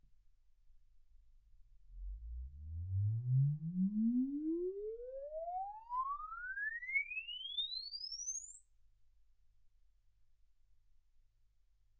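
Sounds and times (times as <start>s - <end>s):
exponential sine sweep from 10 Hz to 24 kHz: 2.0s - 9.3s.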